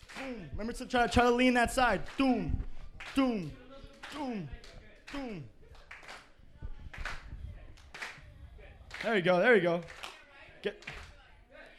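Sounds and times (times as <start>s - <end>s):
speech: 0.3s - 5.6s, 9.0s - 10.0s, 10.6s - 11.0s
hand clapping: 1.9s - 6.3s, 6.9s - 8.2s, 8.9s - 9.2s, 9.8s - 10.2s, 10.8s - 11.2s.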